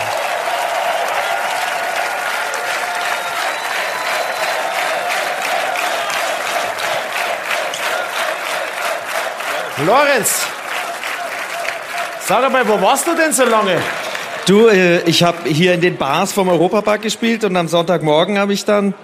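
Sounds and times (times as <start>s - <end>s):
audience applause: 0.0s - 16.6s
speech: 9.8s - 10.6s, 12.3s - 19.0s.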